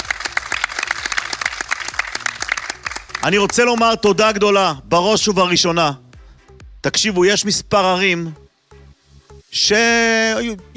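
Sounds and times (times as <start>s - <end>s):
audience applause: 0.0s - 4.3s
speech: 3.2s - 6.0s, 6.8s - 8.4s, 9.5s - 10.7s.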